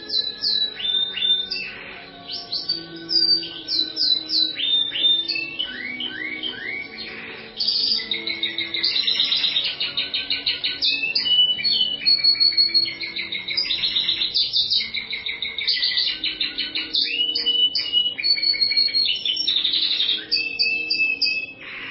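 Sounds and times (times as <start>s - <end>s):
bird song with high chirps, down-slurred whistles and rattled trills: 0.0s - 21.8s.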